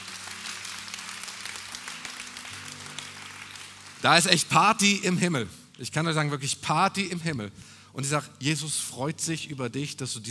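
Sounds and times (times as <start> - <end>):
audience applause: 0.0 - 4.6
speech: 4.0 - 10.2.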